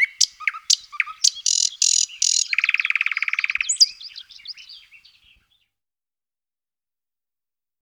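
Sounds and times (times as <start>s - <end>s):
thrush nightingale singing: 0.0s - 5.7s.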